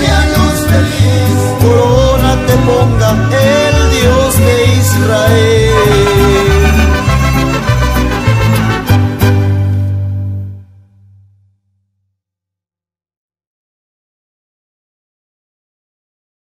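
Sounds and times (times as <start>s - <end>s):
Christian mariachi music: 0.0s - 11.4s.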